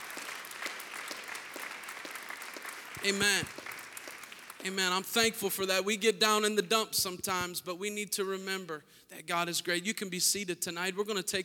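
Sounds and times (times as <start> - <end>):
audience clapping hands: 0.0 - 5.7
speech: 3.0 - 3.6, 4.6 - 11.4.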